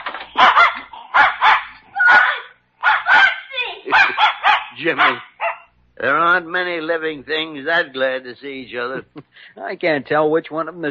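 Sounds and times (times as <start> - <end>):
dog barking excitedly: 0.0 - 5.8
speech: 4.8 - 5.3, 6.0 - 10.9.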